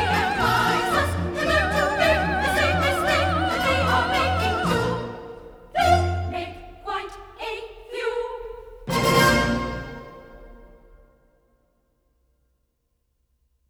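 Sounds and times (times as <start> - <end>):
women's choir singing: 0.0 - 10.1.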